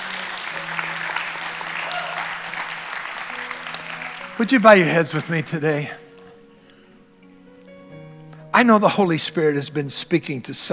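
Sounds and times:
audience applause: 0.0s - 5.6s
speech: 4.4s - 6.0s, 8.6s - 10.7s.

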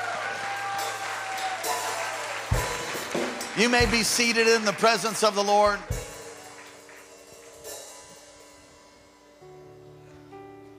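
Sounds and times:
audience hand clapping: 0.0s - 7.8s
speech: 3.6s - 6.0s.

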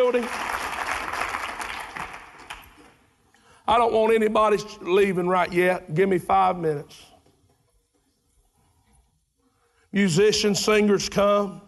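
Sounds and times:
speech: 0.0s - 0.6s, 3.7s - 7.1s, 9.9s - 11.6s
audience hand clap of praise: 0.0s - 3.1s.

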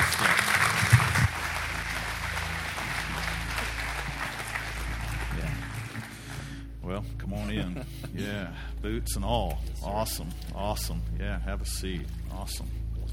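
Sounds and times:
audience clapping: 0.0s - 6.6s
laughter: 7.2s - 8.6s
speech: 8.5s - 12.8s.

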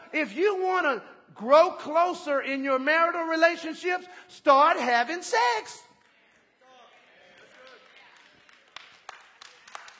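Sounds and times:
speech: 0.1s - 5.9s
scattered audience claps: 5.9s - 9.9s.

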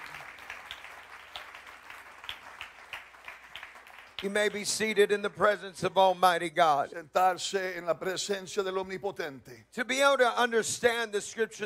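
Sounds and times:
audience clapping hands: 0.0s - 5.0s
speech: 4.2s - 11.6s.

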